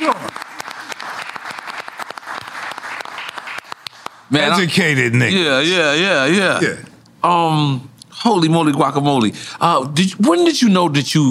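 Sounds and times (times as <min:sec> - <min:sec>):
audience applauding: 0:00.0 - 0:04.4
speech: 0:04.3 - 0:11.2.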